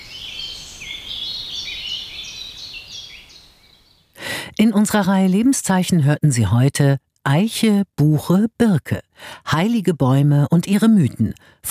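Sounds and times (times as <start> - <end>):
birds singing in the treetops of an old oak in spring: 0.0 - 4.2
speech: 4.6 - 11.6.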